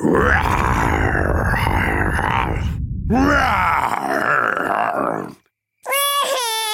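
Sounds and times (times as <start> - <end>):
voice imitating a fierce dinosaur roar: 0.0 - 5.4
high wavering whine: 0.1 - 4.9.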